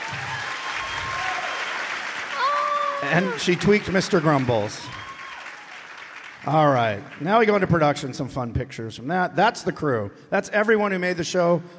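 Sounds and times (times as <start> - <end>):
audience applause: 0.0 - 8.1
speech: 3.0 - 5.0, 6.4 - 11.7.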